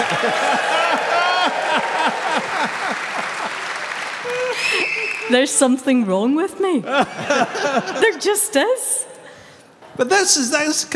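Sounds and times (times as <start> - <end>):
audience applause: 0.0 - 5.4
laughter: 0.0 - 5.6, 6.7 - 9.0
speech: 0.1 - 0.8, 5.3 - 9.0, 10.0 - 10.9.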